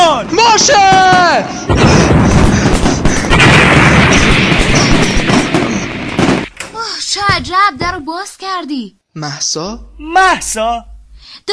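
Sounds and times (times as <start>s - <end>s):
speech: 0.2s - 2.0s, 7.7s - 10.9s
cannon and mortar fire sound effect: 0.2s - 6.6s.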